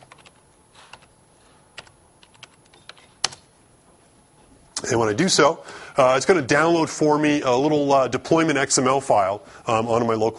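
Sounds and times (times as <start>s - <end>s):
computer keyboard typing to log in on a development machine: 0.0s - 1.1s, 1.8s - 3.5s
speech: 4.9s - 10.3s.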